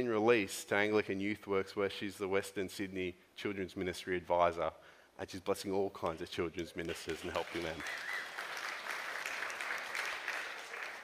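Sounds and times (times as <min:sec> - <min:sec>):
speech: 0:00.0 - 0:08.2
audience applause: 0:06.9 - 0:11.0.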